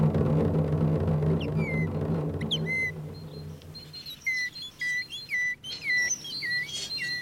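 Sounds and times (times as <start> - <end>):
low rumbling hum: 0.0 - 4.5
person whistling tit-like calls: 1.4 - 7.1.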